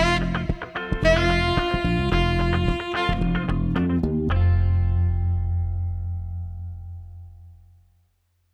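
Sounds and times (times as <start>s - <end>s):
street saxophone combo playing funky soul without drums: 0.0s - 5.4s.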